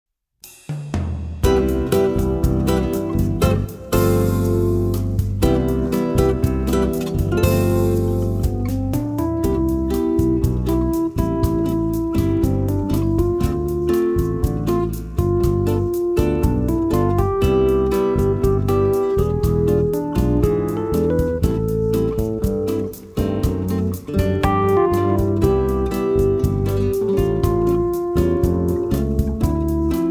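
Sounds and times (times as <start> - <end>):
Latin music: 1.4 - 30.0.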